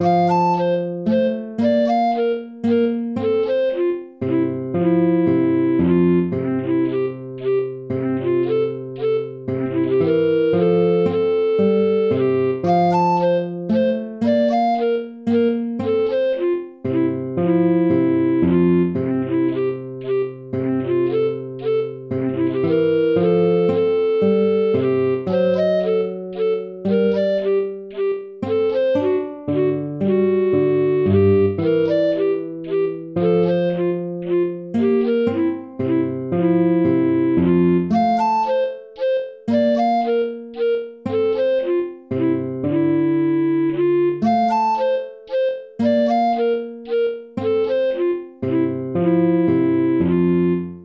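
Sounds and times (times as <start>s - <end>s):
minuet: 0.0s - 50.8s.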